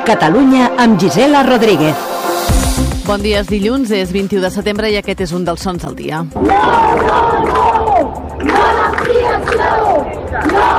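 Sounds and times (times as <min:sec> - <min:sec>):
speech: 0:00.0 - 0:07.8
thousands of protesters shouting and chanting against El Prat airport expansion: 0:06.4 - 0:10.7.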